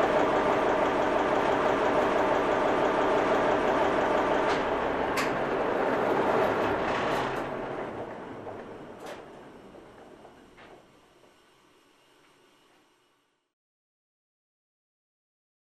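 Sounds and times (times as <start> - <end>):
military truck engine running in a hangar: 0.0 - 10.9.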